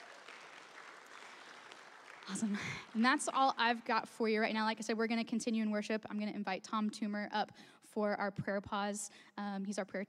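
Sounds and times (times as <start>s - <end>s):
crowd applause: 0.0s - 3.8s
speech: 2.3s - 10.0s.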